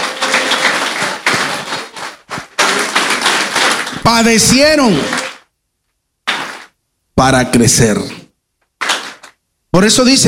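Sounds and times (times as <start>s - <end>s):
audience applause: 0.0s - 5.5s, 6.3s - 6.7s, 8.8s - 9.4s
speech: 4.1s - 5.2s, 7.2s - 8.2s, 9.8s - 10.2s.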